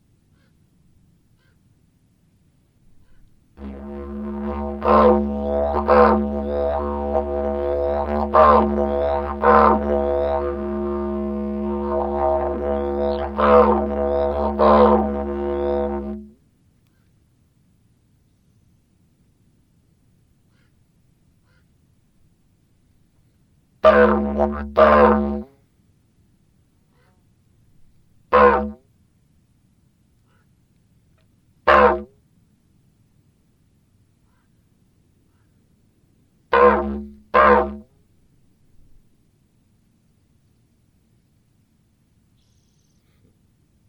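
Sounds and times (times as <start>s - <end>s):
didgeridoo: 3.6s - 16.4s, 23.8s - 25.5s, 28.3s - 28.8s, 31.7s - 32.1s, 36.5s - 37.8s.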